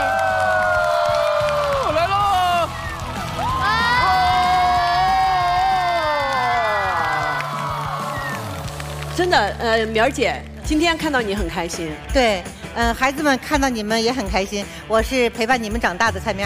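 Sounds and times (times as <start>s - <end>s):
audience applause: 0.0s - 9.9s
speech: 9.3s - 16.4s.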